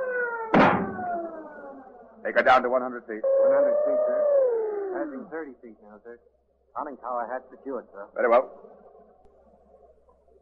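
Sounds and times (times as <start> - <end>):
sharp metallic clank: 0.5 - 1.2
speech: 2.6 - 4.4, 5.0 - 8.9
submarine collision alarm wailing: 3.2 - 4.1.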